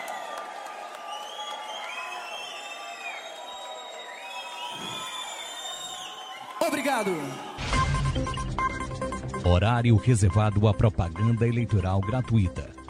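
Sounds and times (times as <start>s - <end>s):
audience applause: 0.0s - 7.6s
speech: 6.6s - 8.3s, 9.5s - 12.7s.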